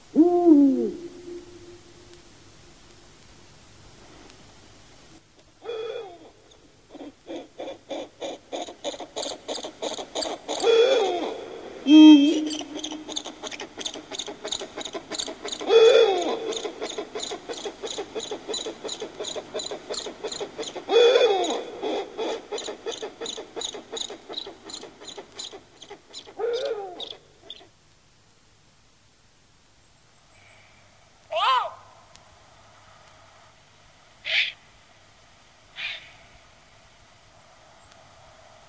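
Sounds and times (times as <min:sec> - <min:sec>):
eagle owl calls and songs: 0:00.1 - 0:01.9, 0:05.6 - 0:27.7, 0:34.2 - 0:34.6, 0:35.7 - 0:36.3.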